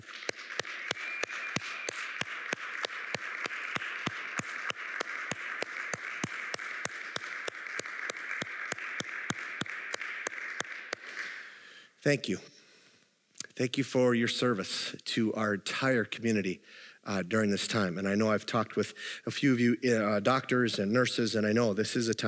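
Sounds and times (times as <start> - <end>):
sharp evenly timed claps: 0.0 - 11.4
small group applauding: 0.0 - 11.7
speech: 12.0 - 12.5, 13.6 - 22.2.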